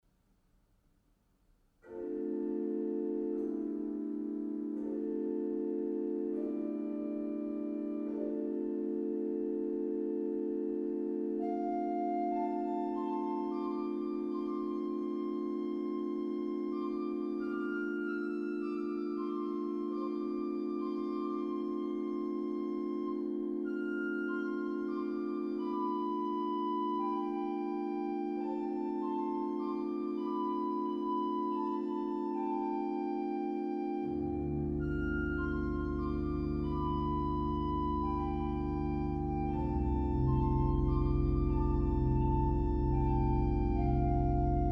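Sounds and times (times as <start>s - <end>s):
improvised music: 1.8s - 44.7s.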